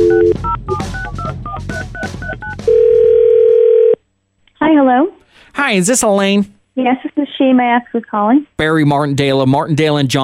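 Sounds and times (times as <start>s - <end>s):
loud steady telephone tone: 0.0s - 0.5s, 2.3s - 4.0s
touch-tone telephone dialing beeps: 0.0s - 4.0s
speech: 5.0s - 10.2s.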